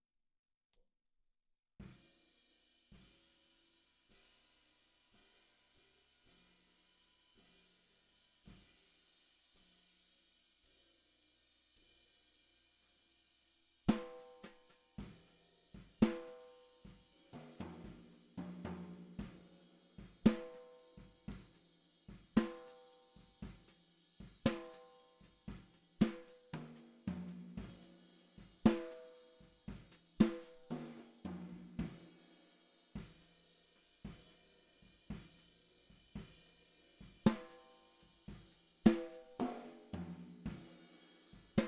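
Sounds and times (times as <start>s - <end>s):
snare drum: 13.9s - 41.6s.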